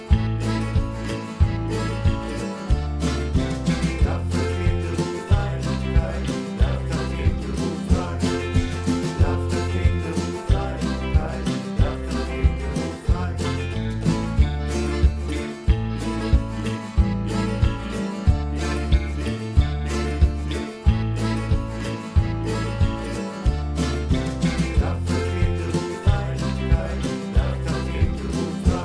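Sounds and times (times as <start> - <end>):
karaoke backing music without vocals: 0.0 - 28.8.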